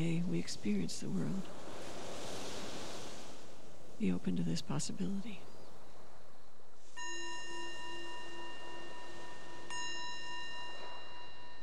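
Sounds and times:
speech: 0.0 - 1.8, 4.0 - 5.5
meditation bell ringing: 7.0 - 11.6.

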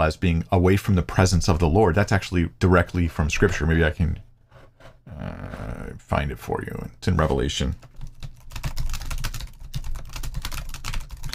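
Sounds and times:
speech: 0.0 - 4.3, 5.1 - 7.9
rapid typing on a computer keyboard: 7.8 - 11.3.

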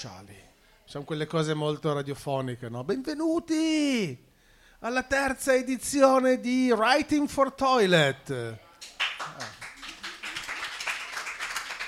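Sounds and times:
speech: 0.0 - 8.6
spontaneous audience applause: 9.0 - 11.8.

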